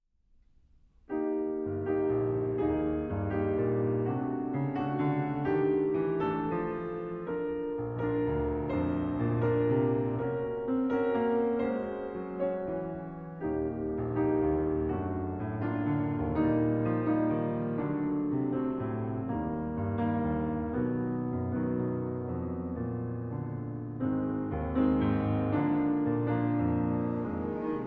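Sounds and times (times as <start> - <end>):
piano concerto: 1.0 - 27.8.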